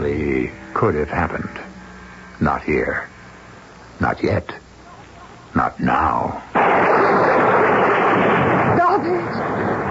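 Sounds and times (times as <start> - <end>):
speech: 0.0 - 1.7, 2.4 - 3.1, 4.0 - 4.6, 5.5 - 6.9
thunder of a summer night storm: 6.6 - 9.9.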